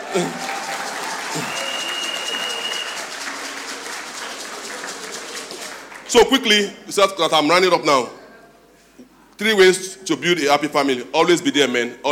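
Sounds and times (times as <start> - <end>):
audience clapping: 0.0 - 6.6
speech: 0.2 - 0.5, 1.3 - 1.6, 6.1 - 8.2, 9.4 - 12.0.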